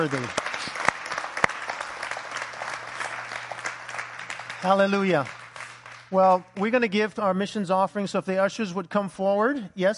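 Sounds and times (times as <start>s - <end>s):
speech: 0.0s - 0.4s, 4.6s - 5.4s, 6.1s - 9.9s
audience applause: 0.0s - 6.2s.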